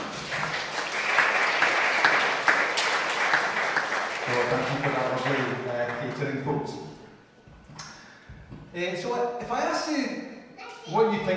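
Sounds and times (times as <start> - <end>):
crowd applause: 0.0 - 6.6
speech: 8.7 - 10.2, 10.9 - 11.3.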